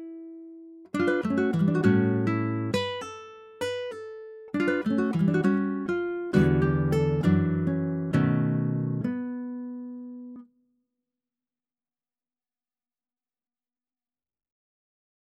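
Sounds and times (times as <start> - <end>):
song for acoustic guitar: 0.0 - 10.5.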